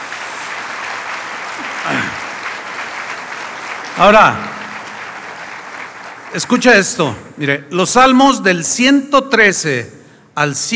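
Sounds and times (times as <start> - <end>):
audience applauding: 0.0 - 7.3
speech: 4.0 - 4.5, 6.3 - 10.7.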